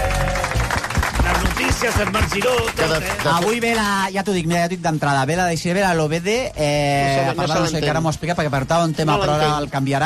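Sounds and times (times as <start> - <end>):
closing audience applause: 0.0 - 3.9
speech: 1.8 - 10.0.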